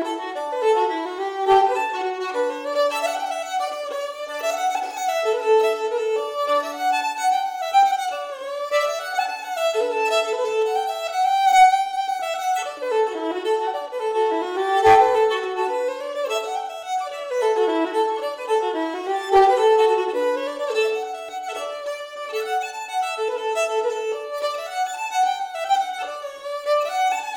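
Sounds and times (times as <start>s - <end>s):
solo fiddle playing reels: 0.0s - 27.3s.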